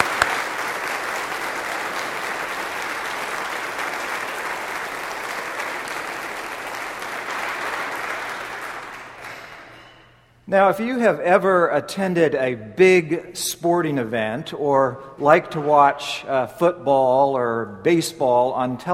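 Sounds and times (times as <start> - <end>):
audience applause: 0.0 - 9.9
speech: 10.5 - 18.9.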